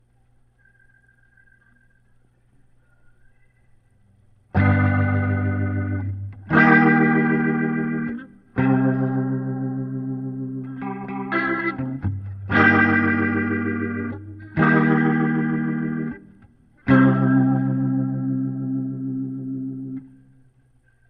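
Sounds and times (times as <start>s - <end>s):
guitar through Leslie rotary speaker: 4.5s - 21.0s.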